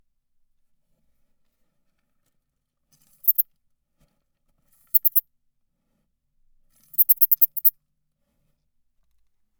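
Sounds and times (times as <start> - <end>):
bush-cricket protest clicks: 3.2 - 3.4, 5.0 - 5.2, 7.0 - 7.7.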